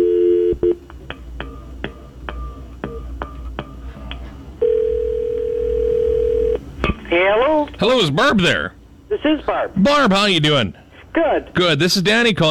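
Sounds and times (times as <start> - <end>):
long steady electronic tone: 0.0 - 0.8, 4.6 - 6.6
telephone dial tone: 4.6 - 6.6
speech: 7.8 - 12.4.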